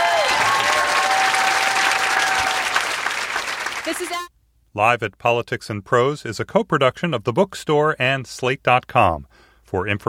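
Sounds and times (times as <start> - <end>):
audience applause: 0.0 - 4.3
speech: 3.9 - 10.0.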